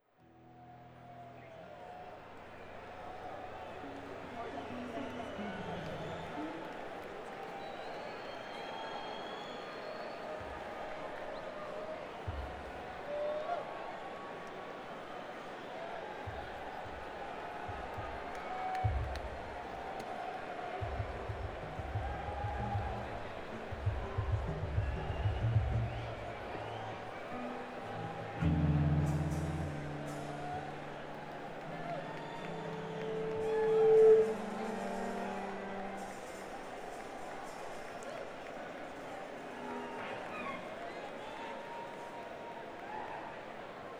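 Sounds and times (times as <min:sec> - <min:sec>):
crowd: 0:00.0 - 0:43.9.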